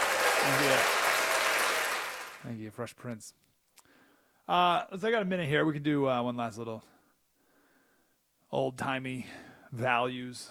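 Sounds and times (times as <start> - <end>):
applause sound effect: 0.0 - 2.5
speech: 0.4 - 1.0, 2.4 - 3.5, 4.5 - 6.9, 8.5 - 10.4.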